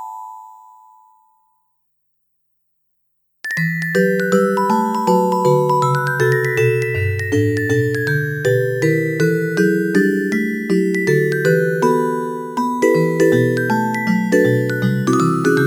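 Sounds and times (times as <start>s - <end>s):
experimental rainbow bell: 3.5s - 15.6s.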